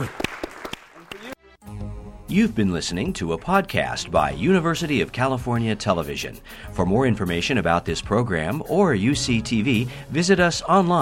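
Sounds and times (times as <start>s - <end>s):
audience applause: 0.0s - 1.4s
speech: 2.3s - 11.0s.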